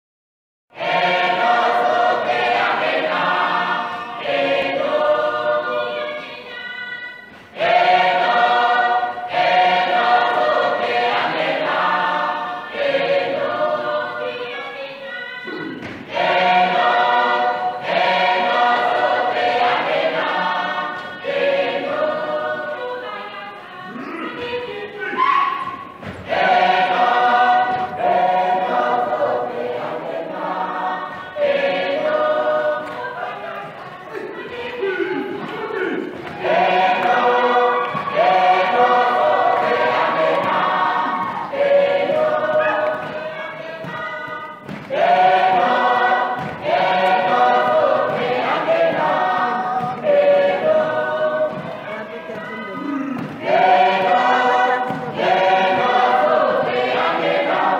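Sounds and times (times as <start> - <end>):
Namibian Oshiwambo gospel song: 0.7 - 57.7.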